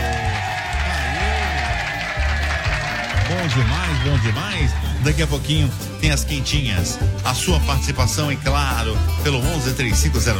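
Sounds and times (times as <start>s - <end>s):
applause sound effect: 0.0s - 5.5s
speech: 3.5s - 10.3s.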